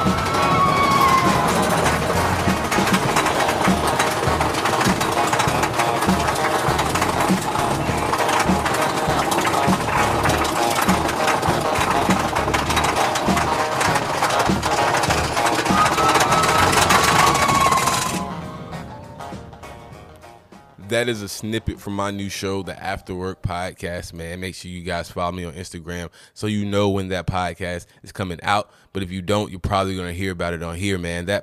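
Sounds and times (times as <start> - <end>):
train ride sound effect from a scripted audio adventure: 0.0 - 19.0
speech: 21.0 - 31.4.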